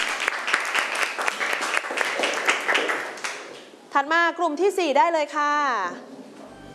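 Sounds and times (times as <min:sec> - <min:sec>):
students applauding: 0:00.0 - 0:03.7
speech: 0:04.0 - 0:06.2.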